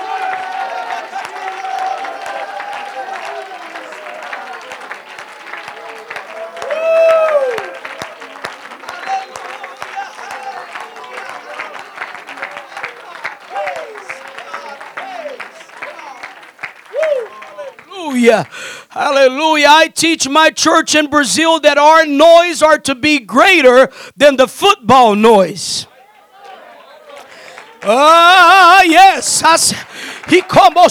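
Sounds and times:
audience clapping: 0:00.0 - 0:18.8, 0:26.4 - 0:30.8
speech: 0:18.3 - 0:25.9, 0:27.9 - 0:30.8.

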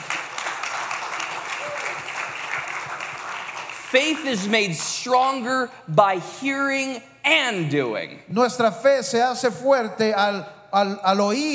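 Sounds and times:
audience applause: 0:00.0 - 0:04.6
speech: 0:03.9 - 0:11.5.

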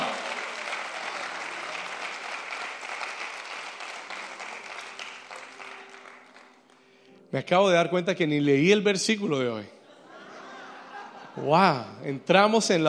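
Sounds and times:
audience applauding: 0:00.0 - 0:07.0
speech: 0:07.3 - 0:09.8, 0:11.4 - 0:12.8
laughter: 0:09.8 - 0:11.8.

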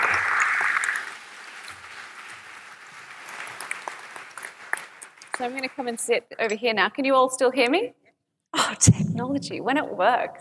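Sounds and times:
audience applause: 0:00.0 - 0:05.4
speech: 0:05.4 - 0:10.3.

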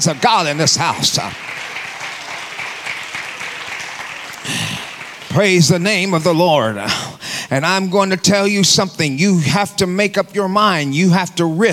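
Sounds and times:
speech: 0:00.0 - 0:01.6, 0:05.3 - 0:11.7
audience clapping: 0:00.0 - 0:06.7.

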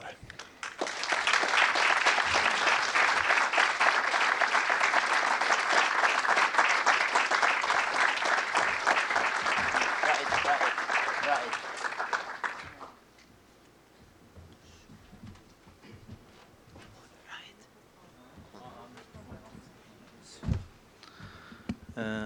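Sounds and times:
audience applause welcoming the head of the White Helmets: 0:00.4 - 0:13.0.

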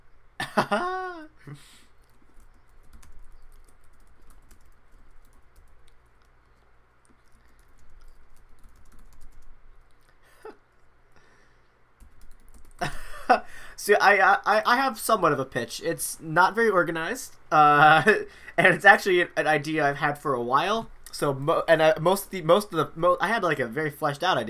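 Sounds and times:
speech: 0:00.6 - 0:01.8, 0:13.8 - 0:24.4
keyboard typing: 0:02.0 - 0:10.1, 0:12.0 - 0:13.0.

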